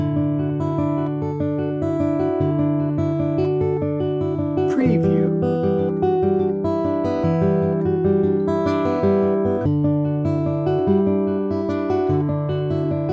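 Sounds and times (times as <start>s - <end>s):
sweet and mellow guitar: 0.0s - 13.1s.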